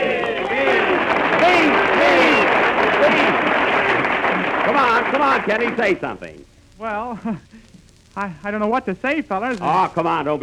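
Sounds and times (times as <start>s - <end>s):
group of boys cheering: 0.0s - 5.8s
speech: 5.0s - 7.6s, 8.2s - 10.4s.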